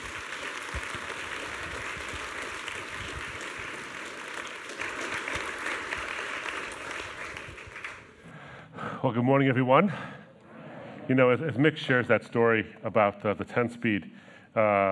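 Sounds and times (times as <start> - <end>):
audience clapping to welcome a speaker onto the stage: 0.0 - 8.3
speech: 9.0 - 10.2, 11.1 - 14.9.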